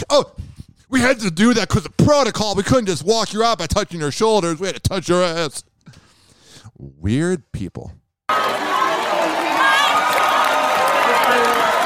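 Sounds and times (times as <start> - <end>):
speech: 0.0 - 6.0, 6.8 - 8.4
people clapping: 8.3 - 11.8.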